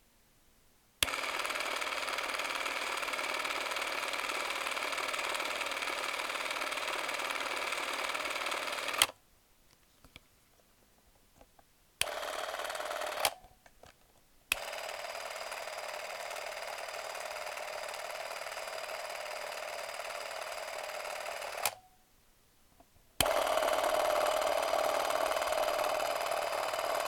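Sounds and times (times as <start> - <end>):
Chinon 723 XL Super 8 camera running: 1.0 - 9.2, 12.0 - 13.4, 14.5 - 21.8, 23.2 - 27.0.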